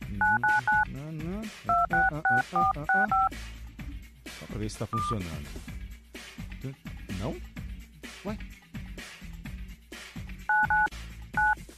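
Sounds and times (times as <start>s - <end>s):
telephone keypad tones during a live radio call-in: 0.2s - 0.8s, 1.7s - 3.3s, 10.5s - 11.6s
speech: 2.5s - 3.5s, 4.6s - 5.7s, 6.6s - 7.5s, 8.2s - 8.6s.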